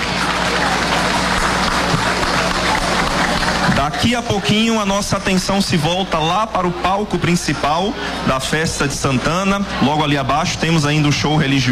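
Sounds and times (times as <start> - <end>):
audience applause: 0.0 - 6.4
speech: 3.9 - 11.7.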